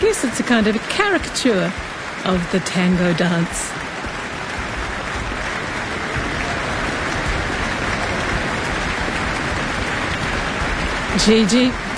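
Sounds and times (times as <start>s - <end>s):
concert audience applause: 0.0s - 11.9s
speech: 0.1s - 3.9s, 11.2s - 11.9s.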